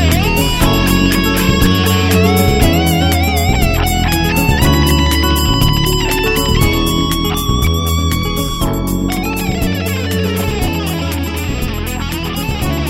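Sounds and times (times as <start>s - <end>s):
acoustic music: 0.0s - 12.8s.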